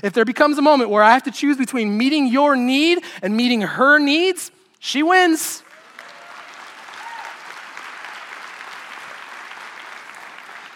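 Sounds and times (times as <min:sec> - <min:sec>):
speech: 0:00.0 - 0:05.7
girls in audience clapping: 0:05.6 - 0:10.7.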